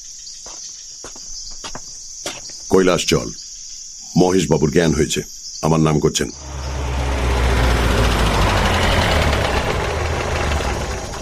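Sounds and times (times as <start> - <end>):
speech: 2.8 - 3.4, 4.2 - 6.6
car engine running in a Bengali radio drama: 6.3 - 11.1.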